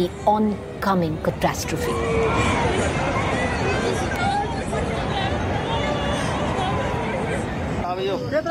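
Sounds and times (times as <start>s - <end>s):
speech: 0.0s - 2.6s, 8.0s - 8.4s
locals screaming as flood waters surge: 1.7s - 7.8s.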